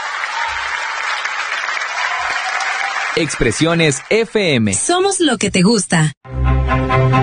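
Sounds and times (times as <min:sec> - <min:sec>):
applause: 0:00.0 - 0:04.7
speech: 0:03.2 - 0:07.1.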